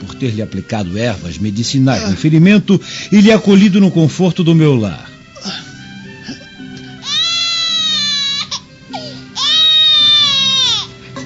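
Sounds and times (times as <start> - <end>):
speech: 0.2 - 5.6
baby crying in a radio drama: 5.4 - 11.2.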